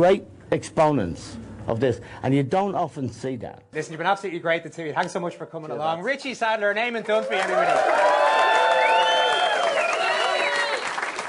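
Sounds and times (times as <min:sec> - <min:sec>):
speech: 0:00.0 - 0:08.2
live crowd applauding: 0:07.1 - 0:11.2
shouts and whoops: 0:07.2 - 0:11.0.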